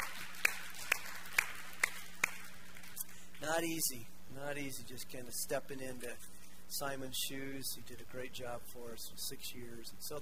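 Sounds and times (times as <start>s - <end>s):
audience clapping: 0.0s - 3.4s
speech: 3.4s - 10.2s.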